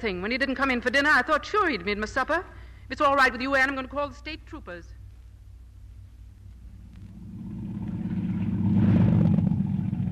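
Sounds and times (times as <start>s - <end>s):
speech: 0.0s - 5.0s
boat engine running then shut off: 7.1s - 10.1s.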